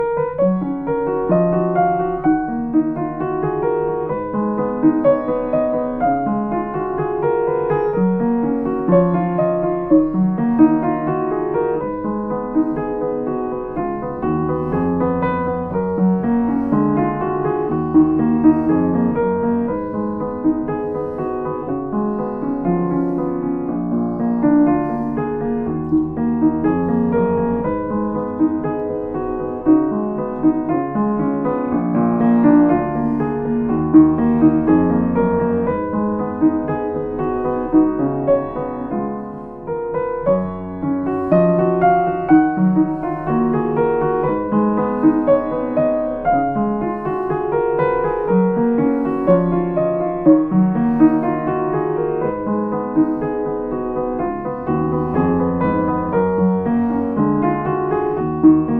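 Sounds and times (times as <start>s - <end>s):
Kemble piano: 0.0s - 58.7s.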